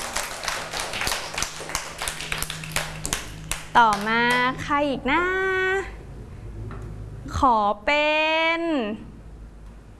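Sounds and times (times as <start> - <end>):
children clapping: 0.0 - 4.6
speech: 3.7 - 6.0, 7.4 - 9.1.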